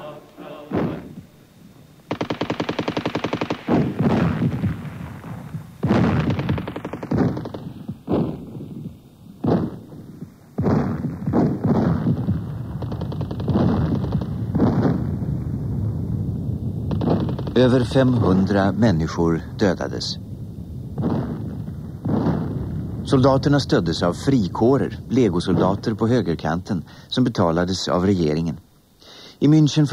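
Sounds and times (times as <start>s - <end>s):
gunfire in street battles: 0.0s - 1.2s, 2.1s - 16.2s, 16.8s - 20.2s, 20.8s - 27.1s
machine-gun volleys: 2.1s - 15.3s, 16.9s - 18.4s, 21.0s - 26.7s
speech: 17.6s - 20.3s, 23.1s - 28.6s, 29.4s - 29.9s.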